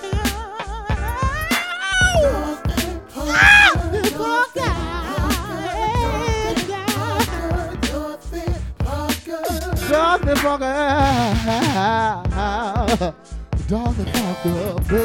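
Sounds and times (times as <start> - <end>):
people singing: 0.3 - 12.0
dog howling along to singing: 3.3 - 3.8
speech: 10.5 - 15.0.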